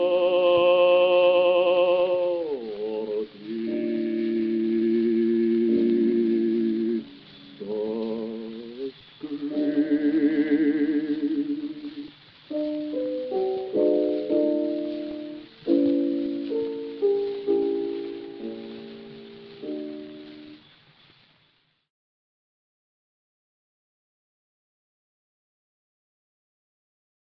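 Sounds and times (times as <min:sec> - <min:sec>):
gramophone: 0:00.0 - 0:20.6.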